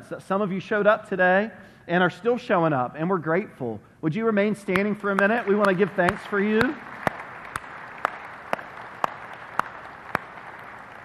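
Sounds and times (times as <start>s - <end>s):
speech: 0.1s - 6.9s
audience applause: 5.2s - 11.0s.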